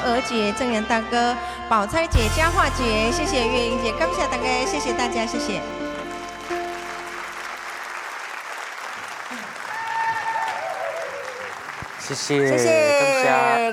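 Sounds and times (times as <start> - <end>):
speech: 0.1 - 5.8, 12.1 - 13.7
audience applause: 5.8 - 13.7.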